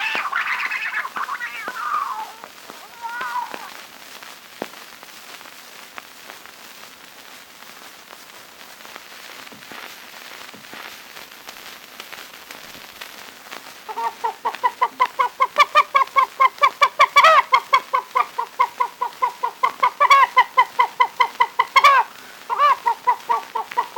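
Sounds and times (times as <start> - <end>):
chicken clucking: 0.0 - 3.7, 13.9 - 23.9
rooster crowing: 0.0 - 3.7
bird calling: 0.0 - 3.8, 13.9 - 23.9
cat meowing: 0.0 - 3.8.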